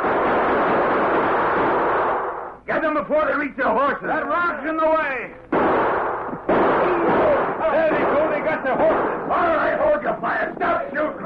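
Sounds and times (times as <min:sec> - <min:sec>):
gunshots: 0:00.0 - 0:03.0, 0:05.4 - 0:11.2
speech: 0:02.9 - 0:05.5.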